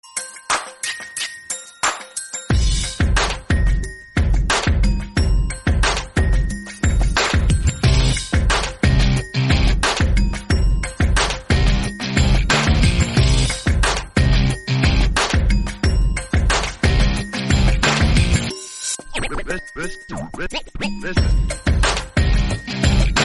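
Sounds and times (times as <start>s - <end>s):
African morning ringtone: 0.0s - 23.2s.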